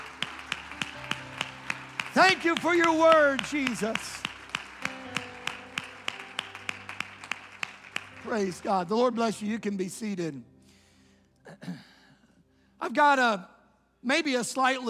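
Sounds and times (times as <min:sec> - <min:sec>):
audience clapping hands: 0:00.0 - 0:09.4
speech: 0:02.2 - 0:04.2, 0:08.2 - 0:10.5, 0:12.9 - 0:14.8.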